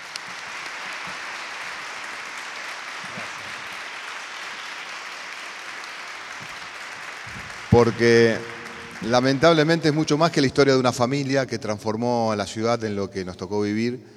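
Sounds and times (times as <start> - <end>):
crowd applauding: 0.0 - 11.1
speech: 7.7 - 14.1.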